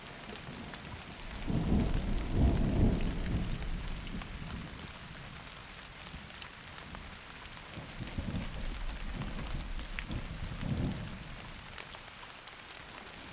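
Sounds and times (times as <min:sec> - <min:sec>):
thunderstorm: 0:00.4 - 0:05.3, 0:07.8 - 0:11.8.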